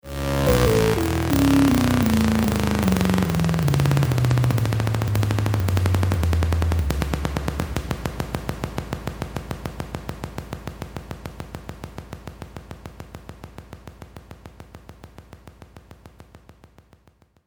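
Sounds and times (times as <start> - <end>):
descending synthesizer tone: 0.0 - 8.3.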